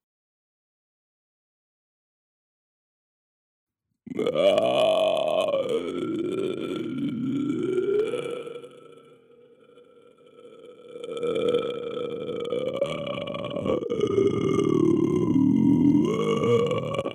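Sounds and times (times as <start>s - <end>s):
foley creature vocalizations: 4.1s - 17.1s.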